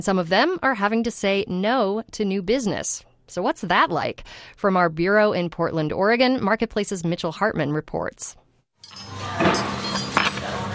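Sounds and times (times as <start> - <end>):
speech: 0.0 - 9.7
busy diner room noise at an eggs-and-burgers cafe in Portland, Oregon: 8.8 - 10.7
dishes clattering in a diner: 8.9 - 10.6.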